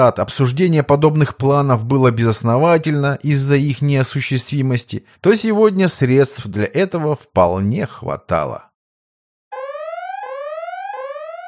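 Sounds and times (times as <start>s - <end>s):
speech: 0.0s - 8.7s
ship's alarm signal sounding through compartments: 9.5s - 11.4s.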